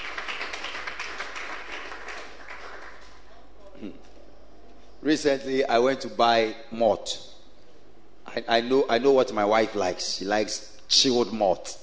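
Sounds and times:
audience clapping hands: 0:00.0 - 0:03.3
speech: 0:05.0 - 0:07.3, 0:08.4 - 0:11.8.

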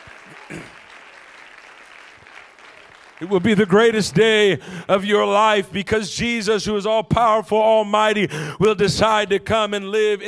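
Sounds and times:
audience clapping hands: 0:00.0 - 0:04.6
speech: 0:00.5 - 0:00.8, 0:03.2 - 0:10.2.

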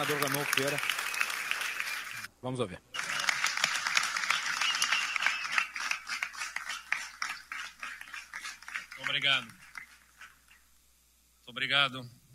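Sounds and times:
speech: 0:00.0 - 0:01.0, 0:02.4 - 0:02.9, 0:09.2 - 0:09.6, 0:11.5 - 0:12.3
supporters applauding the governor's arrival: 0:00.0 - 0:02.3, 0:03.0 - 0:10.5.

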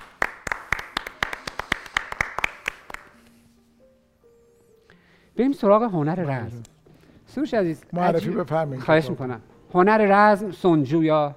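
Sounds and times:
rhythmic handclapping: 0:00.0 - 0:03.2
speech: 0:05.4 - 0:06.7, 0:07.4 - 0:11.3.

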